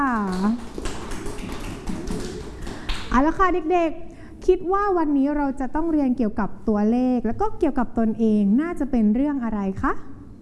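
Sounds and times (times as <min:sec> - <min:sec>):
speech: 0:00.0 - 0:00.8, 0:03.1 - 0:10.2
children clapping: 0:00.2 - 0:03.2.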